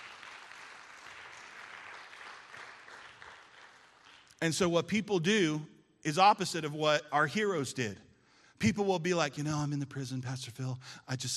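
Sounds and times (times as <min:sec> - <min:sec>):
audience applause: 0:00.0 - 0:04.4
speech: 0:04.4 - 0:11.3.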